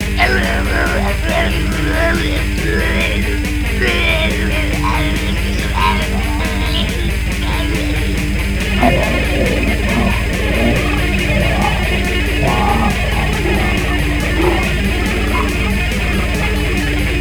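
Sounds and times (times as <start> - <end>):
black metal music: 0.0 - 17.1
laughter: 0.0 - 17.1.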